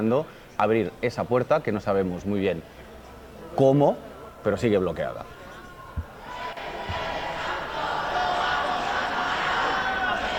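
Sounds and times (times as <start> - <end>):
speech: 0.0 - 2.8, 3.6 - 5.4
crowd shouting behind police cordon: 5.3 - 10.3.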